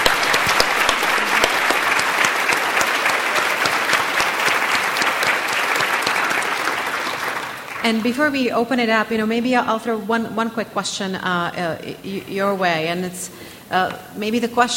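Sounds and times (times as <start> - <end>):
audience applause: 0.0 - 8.3
speech: 7.9 - 14.7.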